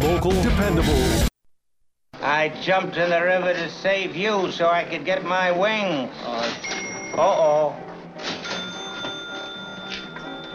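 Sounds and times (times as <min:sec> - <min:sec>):
speech: 0:00.2 - 0:01.3, 0:02.3 - 0:08.3
small bell ringing: 0:08.4 - 0:10.5.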